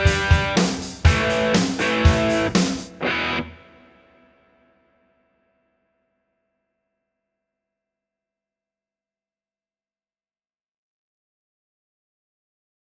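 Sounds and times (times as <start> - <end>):
rock bass session playing: 0.0 - 4.0.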